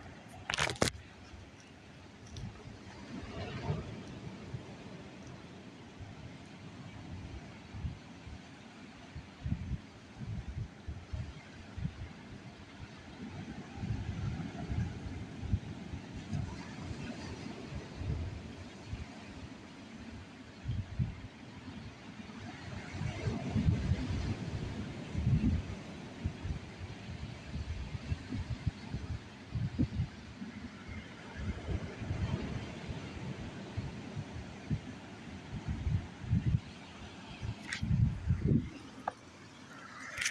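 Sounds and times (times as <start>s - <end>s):
ocean waves: 0.0s - 40.2s.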